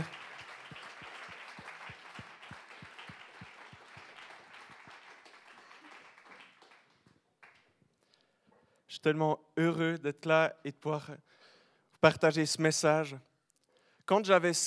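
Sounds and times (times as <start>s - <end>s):
audience applause: 0.0s - 7.7s
rhythmic claps: 0.0s - 7.8s
speech: 8.9s - 11.4s, 12.0s - 13.3s, 14.1s - 14.6s.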